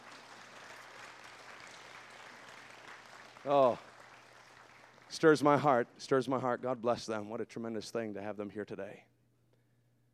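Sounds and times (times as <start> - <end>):
round of applause for deputies: 0.0 - 5.9
speech: 3.4 - 3.9, 5.1 - 9.1.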